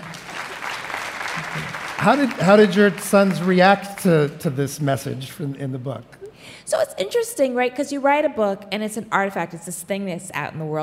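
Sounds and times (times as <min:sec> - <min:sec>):
audience clapping: 0:00.0 - 0:04.9
speech: 0:01.6 - 0:10.8.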